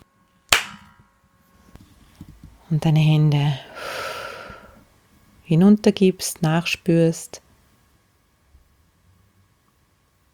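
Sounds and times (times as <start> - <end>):
hands clapping: 0.5 - 0.9
speech: 2.7 - 3.7, 5.5 - 7.4.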